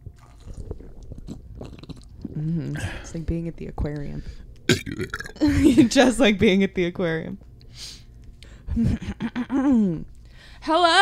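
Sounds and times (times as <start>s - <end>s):
person sipping a drink: 0.0s - 3.0s
speech: 2.4s - 8.0s, 8.8s - 11.0s.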